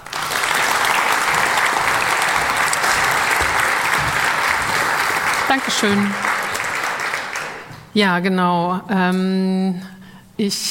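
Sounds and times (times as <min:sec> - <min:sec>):
audience applause: 0:00.0 - 0:07.8
speech: 0:05.5 - 0:06.3, 0:08.0 - 0:10.6.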